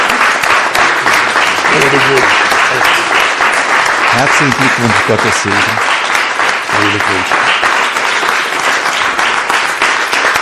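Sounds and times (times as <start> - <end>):
church congregation applauding at a certificate presentation: 0.0 - 10.4
speech: 1.9 - 2.4, 4.2 - 6.0, 6.8 - 7.4.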